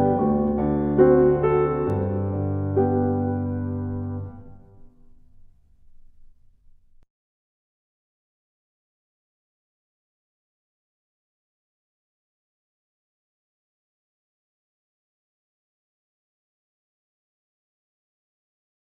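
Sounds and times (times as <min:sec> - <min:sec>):
slow G major scale backing track: 0:00.0 - 0:04.8.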